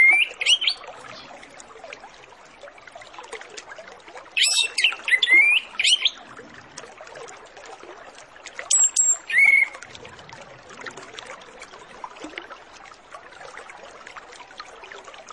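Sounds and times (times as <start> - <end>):
Orange-headed Thrush whistled song: 0.0 - 0.8, 4.4 - 6.2, 8.7 - 9.8.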